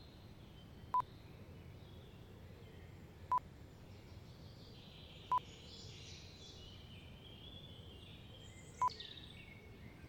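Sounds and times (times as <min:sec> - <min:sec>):
conifer woodland ambience in spring: 0:00.0 - 0:10.0.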